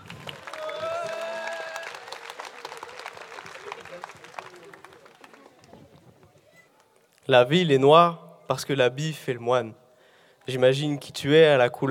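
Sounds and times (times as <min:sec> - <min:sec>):
audience applause and cheering: 0:00.0 - 0:05.8
speech: 0:07.3 - 0:09.8, 0:10.4 - 0:11.8.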